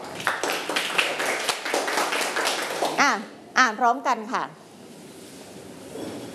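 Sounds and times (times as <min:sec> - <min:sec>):
students clapping hands: 0:00.0 - 0:03.0
speech: 0:03.0 - 0:04.6.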